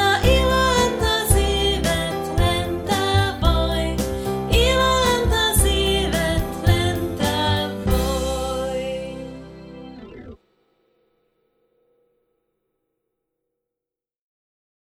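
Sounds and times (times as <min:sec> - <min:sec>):
song: 0:00.0 - 0:10.4.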